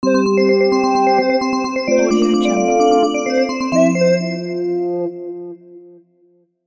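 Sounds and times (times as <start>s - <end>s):
news logo jingle: 0.4s - 4.7s.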